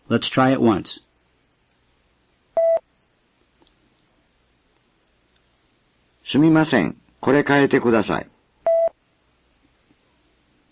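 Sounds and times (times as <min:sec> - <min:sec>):
speech: 0:00.1 - 0:01.0, 0:06.3 - 0:08.3
beep tone prompting a spoken response: 0:02.6 - 0:02.8, 0:08.7 - 0:08.9.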